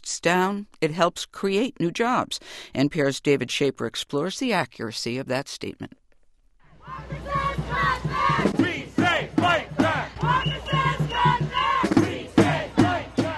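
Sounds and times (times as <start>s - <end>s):
speech: 0.2s - 6.0s
protest crowd shouting at the Wisconsin State Capitol: 6.7s - 13.3s.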